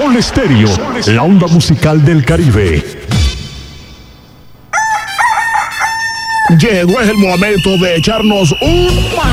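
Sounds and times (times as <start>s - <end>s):
speech: 0.2s - 3.0s, 6.5s - 9.3s
rooster crowing: 4.7s - 6.8s.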